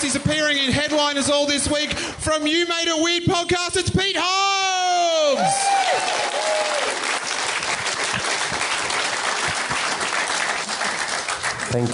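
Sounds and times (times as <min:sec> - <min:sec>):
speech: 0:00.1 - 0:06.3, 0:11.7 - 0:11.9
audience applause: 0:05.4 - 0:11.9.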